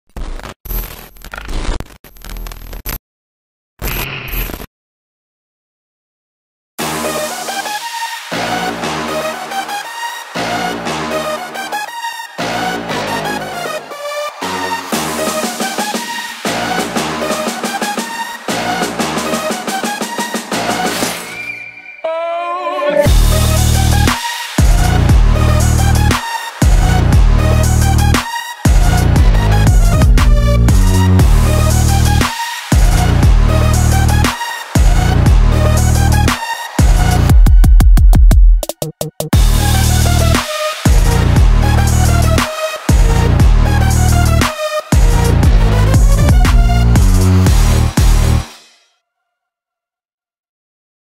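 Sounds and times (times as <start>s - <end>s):
karaoke instrumental music: 6.9s - 38.6s, 39.4s - 48.4s.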